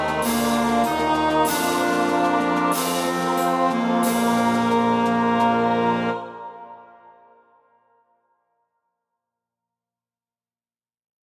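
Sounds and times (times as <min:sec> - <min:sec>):
clarinet melody: 0:00.0 - 0:07.6.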